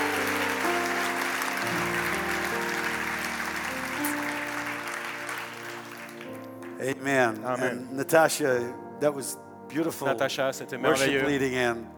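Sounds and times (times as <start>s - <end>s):
crowd applauding: 0.0s - 7.7s
sustained music tones: 0.0s - 11.9s
speech: 6.8s - 11.9s.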